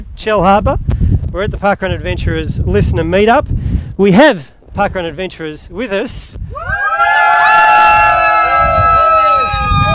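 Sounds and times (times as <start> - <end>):
speech: 0.2 - 6.8
small crowd cheering and whooping: 6.5 - 9.9.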